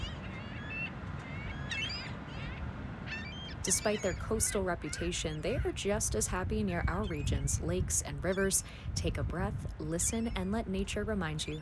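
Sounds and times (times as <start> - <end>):
ring-billed gull calls: 0.0 - 6.0
speech: 3.6 - 11.6.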